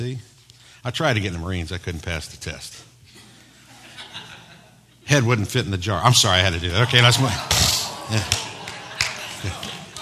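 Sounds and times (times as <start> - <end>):
speech: 0.0 - 2.9, 5.1 - 8.4, 9.4 - 9.7
laughter: 3.5 - 5.0, 6.4 - 10.0
man clapping: 7.5 - 10.0.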